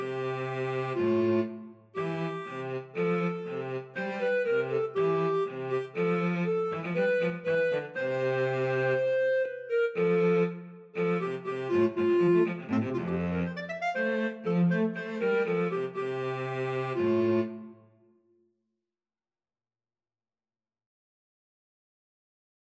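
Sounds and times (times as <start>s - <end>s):
cello: 0.0s - 17.8s
clarinet: 0.0s - 18.0s.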